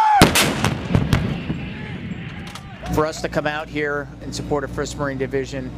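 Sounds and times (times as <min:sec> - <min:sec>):
artillery shell impact: 0:00.2 - 0:01.4
artillery fire during a live-fire drill: 0:00.2 - 0:02.4
speech: 0:03.0 - 0:05.7.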